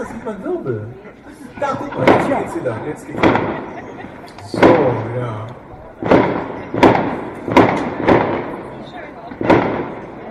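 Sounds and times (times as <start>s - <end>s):
laughter: 0.0s - 6.0s
speech: 0.2s - 3.8s, 4.5s - 6.1s
fireworks exploding: 1.6s - 10.2s.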